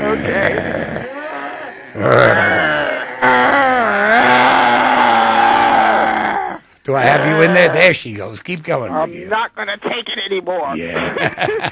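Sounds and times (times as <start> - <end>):
several people growling together: 0.0 - 7.9
speech: 2.0 - 2.4, 7.0 - 11.6
laughter: 10.8 - 11.6.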